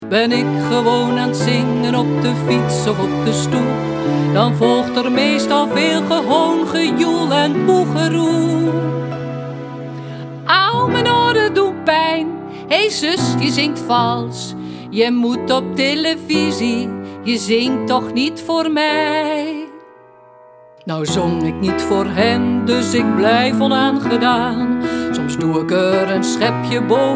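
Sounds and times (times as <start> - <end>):
woman singing: 0.0 - 9.2, 10.4 - 19.8, 20.8 - 27.1.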